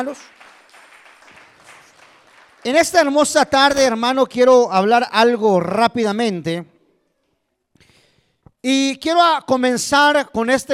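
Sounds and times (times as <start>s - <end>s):
speech: 0.0s - 0.5s, 2.6s - 6.7s, 8.6s - 10.7s
audience applauding: 0.0s - 3.8s.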